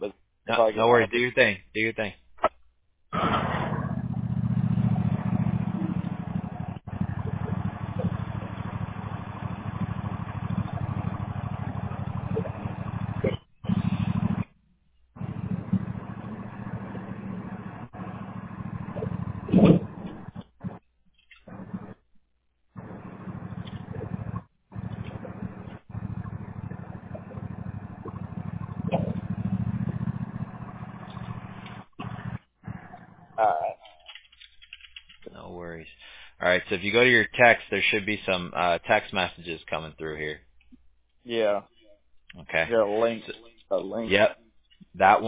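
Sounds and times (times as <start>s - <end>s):
speech: 0.0s - 2.2s, 36.9s - 40.5s, 41.3s - 41.7s, 42.4s - 44.4s, 45.0s - 45.2s
small gasoline lawnmower engine running: 3.2s - 14.6s, 15.2s - 22.1s, 22.7s - 33.3s.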